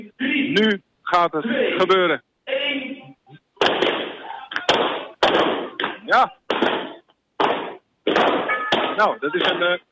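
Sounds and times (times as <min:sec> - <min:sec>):
speech: 0:00.5 - 0:02.3, 0:06.1 - 0:06.8, 0:09.0 - 0:09.9
balloons popping: 0:03.6 - 0:09.9.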